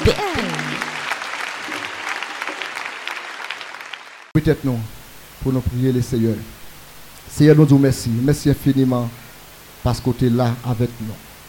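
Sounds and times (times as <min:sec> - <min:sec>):
speech: 0:00.0 - 0:00.4, 0:04.4 - 0:06.6, 0:07.3 - 0:09.2, 0:09.8 - 0:11.2
audience applause: 0:00.0 - 0:04.4.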